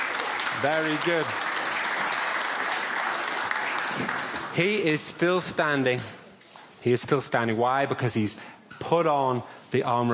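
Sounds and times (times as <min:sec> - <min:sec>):
audience applause: 0:00.0 - 0:04.8
speech: 0:00.6 - 0:01.5, 0:04.0 - 0:06.2, 0:06.8 - 0:10.1.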